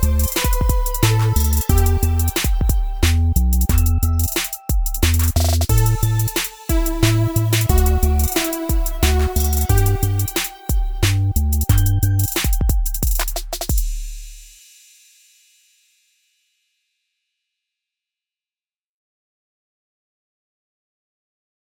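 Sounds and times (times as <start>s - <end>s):
hip hop beat in G major: 0.0s - 14.6s.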